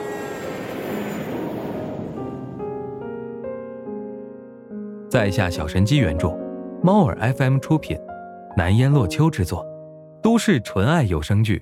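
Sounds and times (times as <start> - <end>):
airplane cabin engine drone: 0.0 - 3.1
speech: 5.1 - 11.6.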